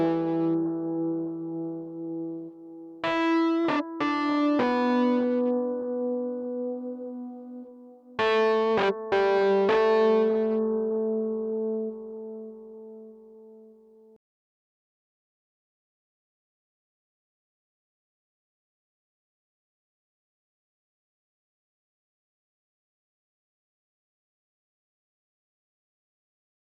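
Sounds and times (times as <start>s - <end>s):
keyboard playing: 0.0s - 13.6s.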